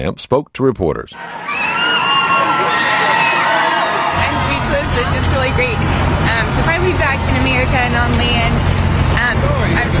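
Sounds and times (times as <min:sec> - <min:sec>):
speech: 0:00.0 - 0:01.6, 0:04.7 - 0:09.9
Carnival cruise ship Triumph passengers cheering on arriving back in port: 0:01.2 - 0:07.2.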